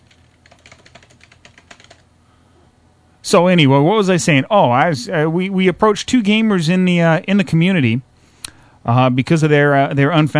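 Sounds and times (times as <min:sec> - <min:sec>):
fingers typing a message on a computer keyboard: 0:00.0 - 0:02.1
speech: 0:03.3 - 0:08.1, 0:08.8 - 0:10.3.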